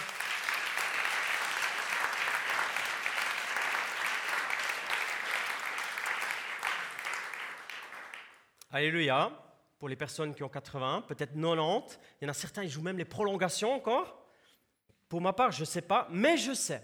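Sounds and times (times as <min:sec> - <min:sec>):
audience applause: 0:00.0 - 0:08.4
speech: 0:08.7 - 0:14.2, 0:15.1 - 0:16.8.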